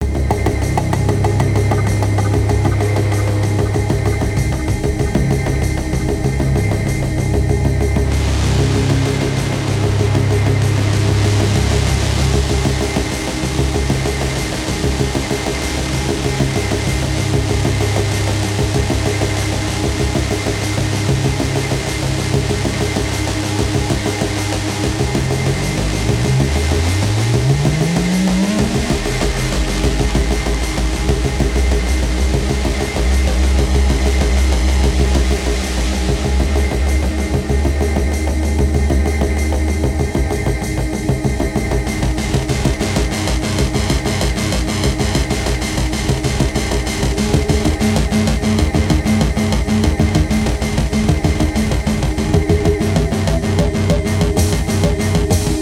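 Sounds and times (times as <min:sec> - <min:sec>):
dark busy aggressive industrial building digital noise: 0:00.0 - 0:55.6.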